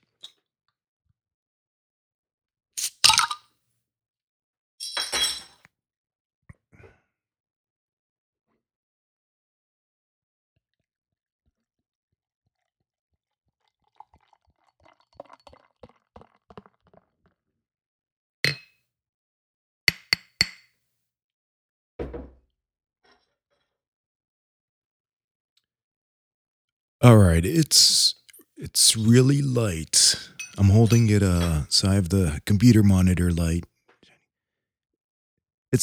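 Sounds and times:
opening beer bottle with Sapporo bottle cap opener: 2.8s - 3.4s
speech: 27.0s - 33.7s.

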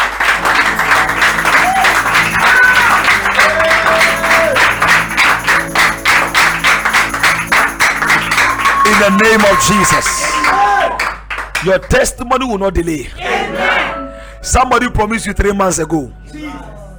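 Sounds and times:
audience clapping: 0.0s - 12.1s
speech: 9.0s - 10.3s, 11.6s - 13.2s, 14.4s - 16.8s.

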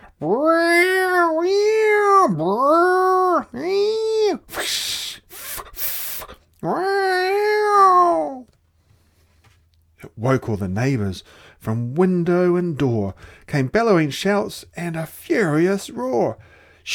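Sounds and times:
cats caterwauling: 0.0s - 4.4s, 6.6s - 8.4s
speech: 0.2s - 0.6s, 10.2s - 16.9s.

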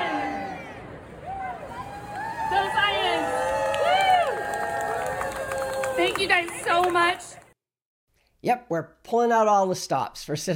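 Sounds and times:
group cheering: 0.0s - 7.3s
speech: 6.2s - 7.4s, 8.4s - 10.5s.

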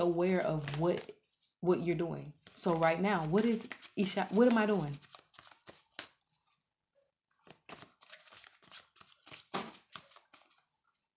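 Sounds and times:
speech: 0.0s - 5.1s
playing cards held in hand flipped up and down: 3.4s - 6.2s, 7.4s - 10.5s.

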